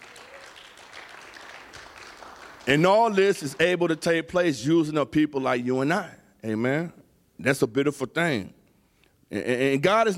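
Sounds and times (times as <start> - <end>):
congregation clapping hands in praise during a church service: 0.0 - 4.3
speech: 2.6 - 8.6, 9.3 - 10.1.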